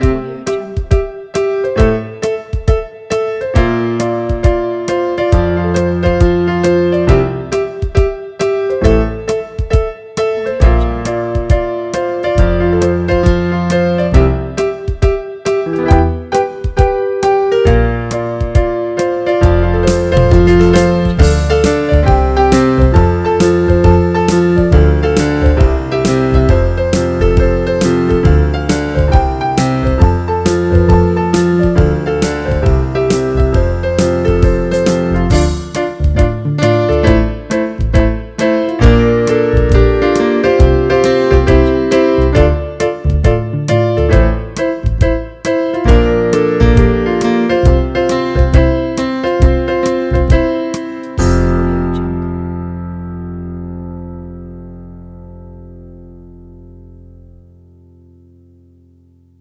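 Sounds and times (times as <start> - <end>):
happy trio music: 0.0 - 53.8.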